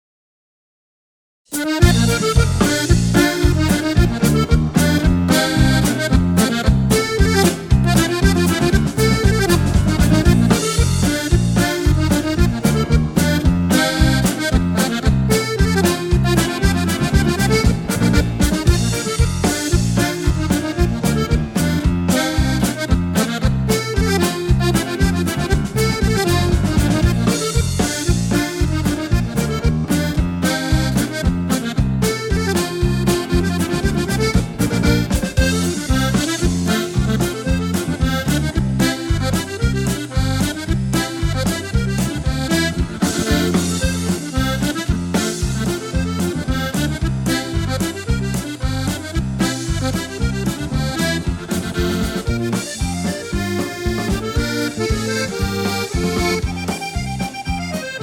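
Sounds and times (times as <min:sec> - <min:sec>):
polka music: 0:01.5 - 0:58.0.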